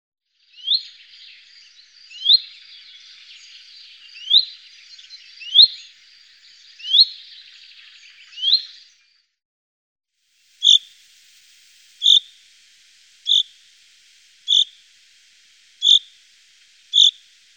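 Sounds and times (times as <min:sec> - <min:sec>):
Common chaffinch trilling song: 0:00.4 - 0:09.1, 0:10.4 - 0:17.5.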